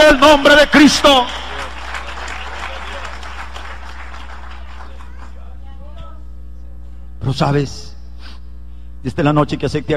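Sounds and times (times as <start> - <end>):
speech: 0.1 - 1.4, 7.3 - 7.9, 9.0 - 9.9
audience applause: 1.1 - 5.5.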